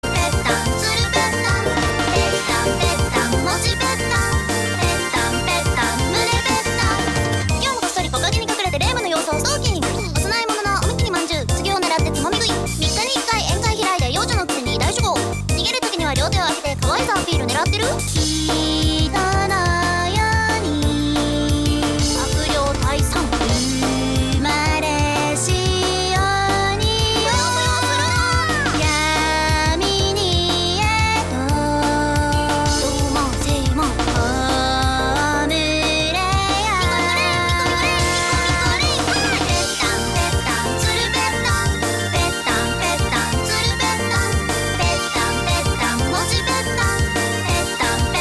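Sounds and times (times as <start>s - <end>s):
vocals: 0.0s - 48.1s.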